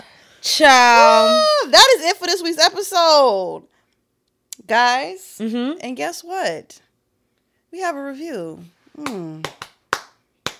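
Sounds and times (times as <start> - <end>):
speech: 0.0 - 3.7, 4.6 - 6.8, 7.7 - 9.6
vocal exclamation: 0.8 - 1.7
sharp hand claps: 9.0 - 10.5.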